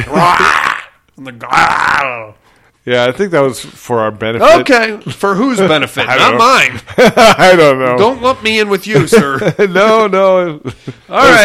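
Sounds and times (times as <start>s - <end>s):
speech: 0.0s - 0.6s, 1.2s - 11.4s
person growling and roaring imitating a shark: 0.0s - 2.2s
laughter: 5.0s - 11.4s.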